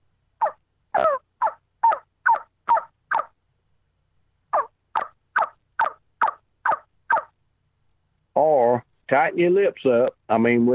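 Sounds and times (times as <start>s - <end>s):
hen turkey yelps made on a call: 0.4s - 3.4s, 4.5s - 7.4s
speech: 9.1s - 10.7s.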